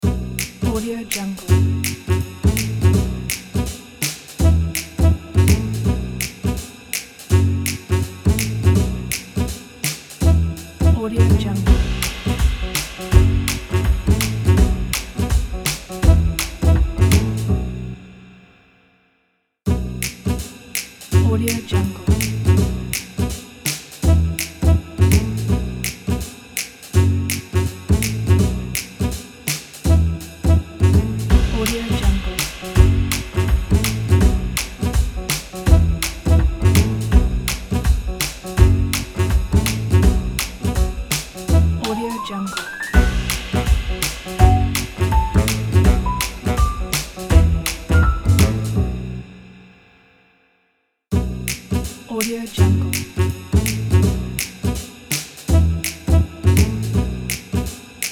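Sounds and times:
jazz background music: 0.0 - 18.1, 19.7 - 49.4, 51.1 - 57.8.

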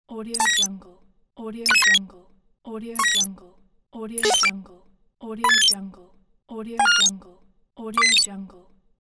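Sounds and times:
buttons: 0.4 - 0.7, 1.7 - 2.0, 3.0 - 3.3, 4.2 - 4.5, 5.4 - 5.8, 6.8 - 7.1, 8.0 - 8.3.

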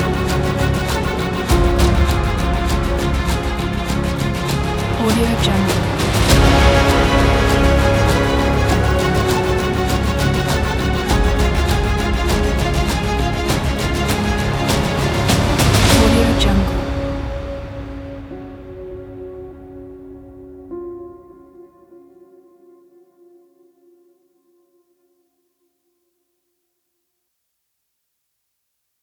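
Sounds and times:
cinematic trailer music: 0.0 - 21.3.

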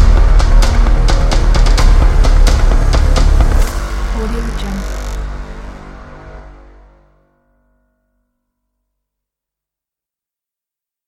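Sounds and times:
epic energetic drums: 0.0 - 5.6.

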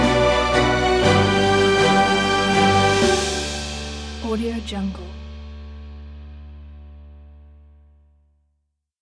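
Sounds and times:
orchestra playing: 0.0 - 4.6
drum kit: 0.0 - 6.7.

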